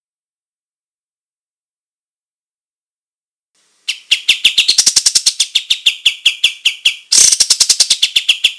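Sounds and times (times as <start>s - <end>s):
olive-winged bulbul song of very rapid high chirps: 3.9s - 8.5s.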